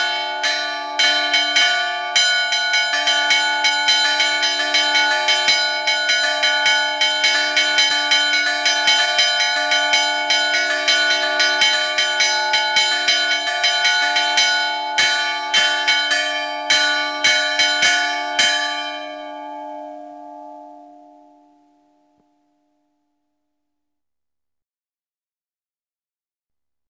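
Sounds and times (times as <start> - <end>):
two church bells ringing music in 6/8 in Etto, Valle Trompia, Brescia: 0.0 - 22.0.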